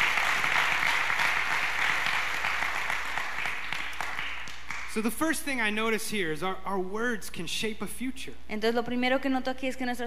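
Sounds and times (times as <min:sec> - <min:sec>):
audience applause and cheering in a large room: 0:00.0 - 0:05.2
speech: 0:05.0 - 0:10.0.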